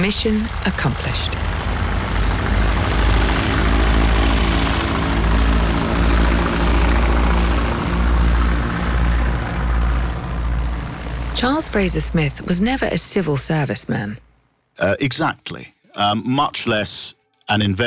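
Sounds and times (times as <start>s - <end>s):
speech: 0.0s - 1.6s, 11.4s - 17.8s
propeller aircraft taking off: 0.0s - 14.2s.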